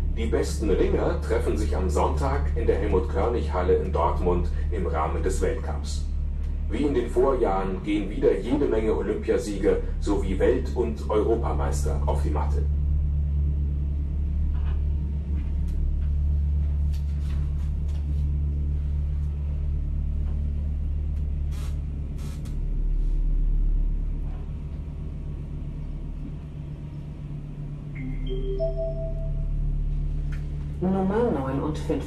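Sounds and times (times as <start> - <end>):
car engine drone on drive from Würzburg to Innsbruck: 0.0 - 32.0
road rumble: 0.0 - 32.0
speech: 0.2 - 6.1, 6.7 - 12.8
rising electronic beeps: 28.0 - 29.6.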